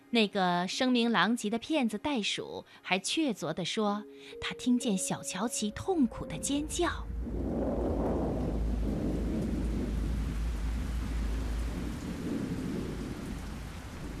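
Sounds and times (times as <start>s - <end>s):
speech: 0.1s - 7.7s
heavy rain: 6.4s - 14.1s
thunder: 6.7s - 14.1s.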